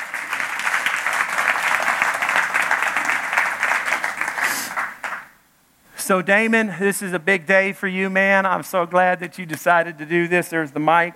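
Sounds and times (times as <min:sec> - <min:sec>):
church congregation applauding a speaker: 0:00.0 - 0:05.3
speech: 0:06.1 - 0:11.1.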